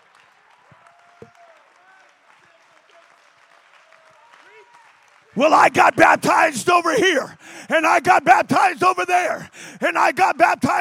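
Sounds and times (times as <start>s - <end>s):
crowd applauding: 0.0s - 6.5s
speech: 4.6s - 10.7s.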